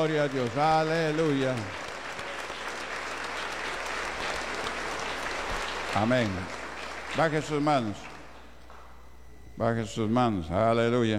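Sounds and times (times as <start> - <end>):
speech: 0.0 - 1.8, 6.0 - 8.1, 9.6 - 11.1
audience applauding: 0.0 - 8.5.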